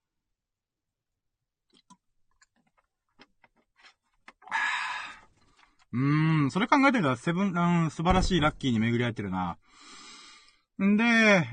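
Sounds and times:
person sipping and swallowing water: 1.7 - 5.9
speech: 5.9 - 10.0, 10.8 - 11.5
breathy exhale: 9.6 - 10.7.

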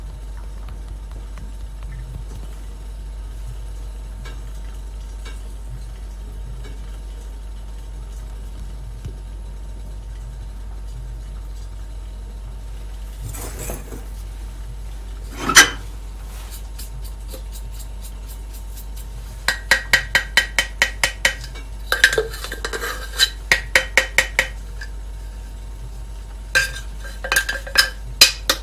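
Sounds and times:
steady low hum: 0.0 - 28.6
Mocha Blend coffee beans popping while roasting: 16.3 - 25.0, 26.5 - 28.6.

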